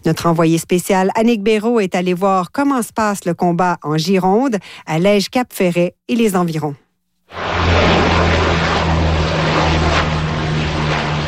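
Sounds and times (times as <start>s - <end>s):
speech: 0.0s - 7.4s
Canadair water bomber plane flying overhead: 7.3s - 11.2s.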